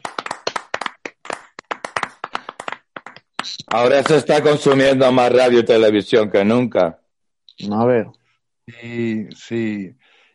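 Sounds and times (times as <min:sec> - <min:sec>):
applause: 0:00.0 - 0:05.1
speech: 0:03.4 - 0:07.0, 0:07.6 - 0:10.1.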